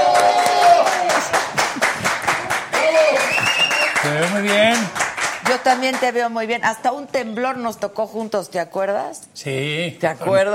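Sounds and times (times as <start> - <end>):
loud audience applause: 0.0 - 6.1
speech: 4.4 - 10.5.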